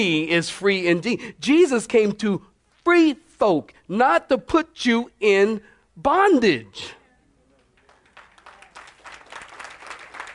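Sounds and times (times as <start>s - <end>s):
speech: 0.0s - 7.0s
group clapping hands: 7.5s - 10.3s.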